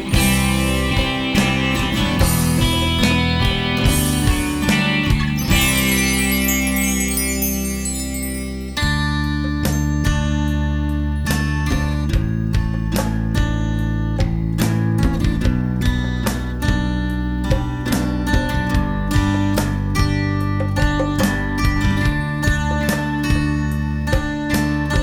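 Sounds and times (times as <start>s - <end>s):
ambient guitars: 0.0s - 25.0s.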